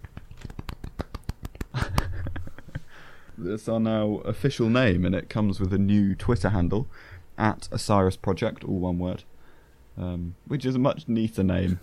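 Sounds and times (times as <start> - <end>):
polite hand clapping: 0.0 - 2.4
speech: 3.4 - 9.3, 10.0 - 11.8.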